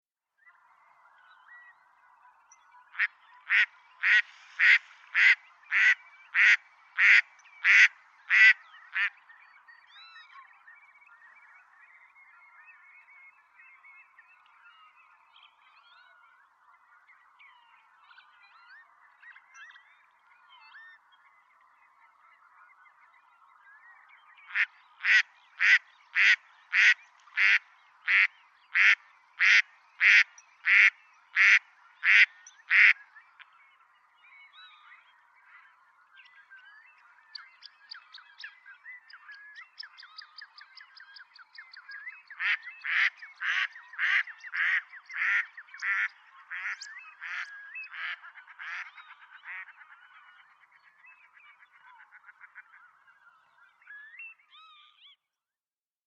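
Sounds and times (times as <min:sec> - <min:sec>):
mallard Anas platyrhynchos: 0:02.9 - 0:09.4, 0:24.4 - 0:33.5, 0:42.3 - 0:53.2.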